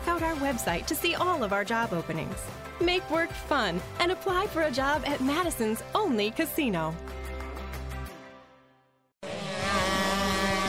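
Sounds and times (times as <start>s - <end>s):
speech: 0.2s - 7.2s
small racing kart engine revving: 9.2s - 10.6s.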